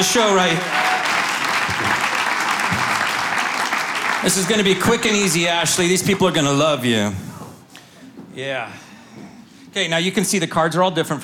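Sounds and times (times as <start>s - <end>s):
speech: 0.0s - 0.9s, 4.2s - 7.3s, 8.4s - 8.8s, 9.8s - 11.2s
audience applause: 0.0s - 6.1s.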